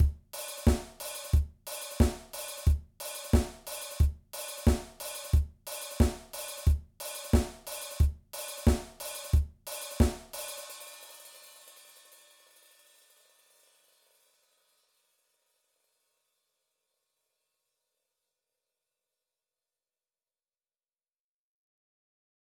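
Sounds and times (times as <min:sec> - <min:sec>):
basic drum beat: 0:00.0 - 0:11.0.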